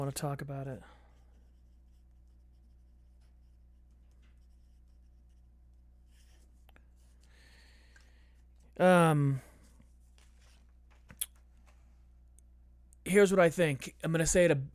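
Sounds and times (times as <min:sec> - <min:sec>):
speech: 0:00.0 - 0:01.0, 0:08.8 - 0:09.5, 0:13.0 - 0:14.7
someone writing something down by hand: 0:01.2 - 0:06.7.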